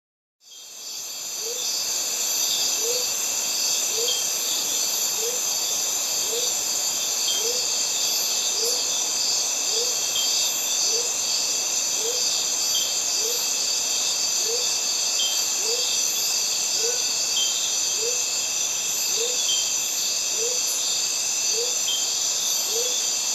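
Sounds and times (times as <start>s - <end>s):
cicadas buzzing at high pitch in a Mediterranean forest: 0.5s - 23.3s.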